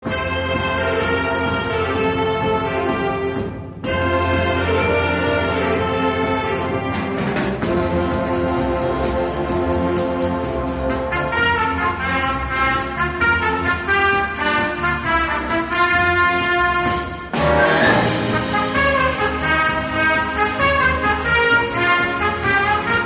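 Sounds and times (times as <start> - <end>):
instrumental music: 0.0 - 23.0.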